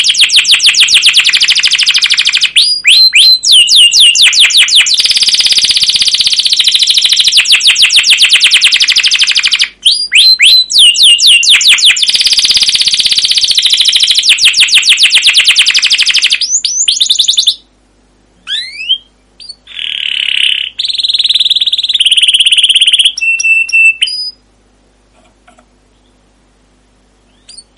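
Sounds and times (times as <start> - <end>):
canary singing: 0.0 - 17.7, 18.4 - 24.4, 27.2 - 27.7.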